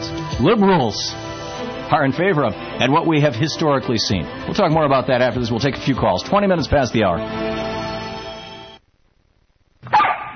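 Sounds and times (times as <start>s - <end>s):
speech: 0.4s - 1.2s, 1.9s - 7.6s
dog barking: 9.8s - 10.3s.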